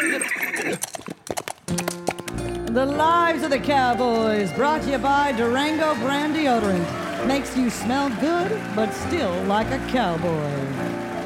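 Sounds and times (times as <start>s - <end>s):
horse neighing: 0.0s - 0.9s
horse hooves clip-clopping as it trots off: 0.0s - 11.2s
speech: 2.8s - 10.9s.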